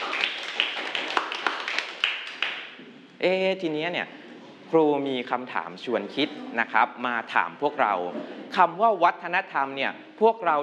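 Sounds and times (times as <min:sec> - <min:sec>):
classroom group applauding: 0:00.0 - 0:02.8
speech: 0:03.2 - 0:10.6.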